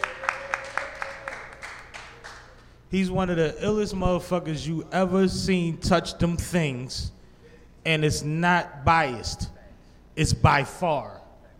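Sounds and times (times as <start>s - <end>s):
audience applause: 0.0s - 2.7s
speech: 2.9s - 7.2s, 7.8s - 9.6s, 10.2s - 11.2s.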